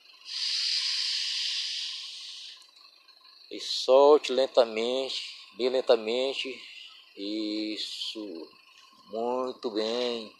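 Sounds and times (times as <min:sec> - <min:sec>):
deep inhalation during a guided relaxation breathing exercise: 0:00.3 - 0:02.6
speech: 0:03.5 - 0:10.3.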